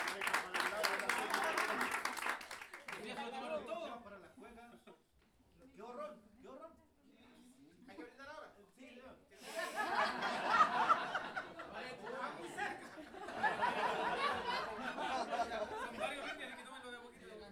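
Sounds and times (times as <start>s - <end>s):
audience applause: 0.0s - 3.3s
laughter: 0.0s - 3.6s, 9.4s - 17.5s.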